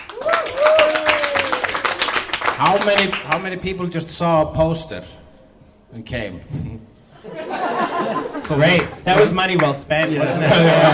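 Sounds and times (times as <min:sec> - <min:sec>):
audience clapping: 0:00.0 - 0:03.6, 0:08.4 - 0:10.9
person whooping: 0:00.1 - 0:02.0
speech: 0:02.6 - 0:05.2, 0:05.9 - 0:10.9
laughter: 0:06.5 - 0:09.4, 0:10.0 - 0:10.9.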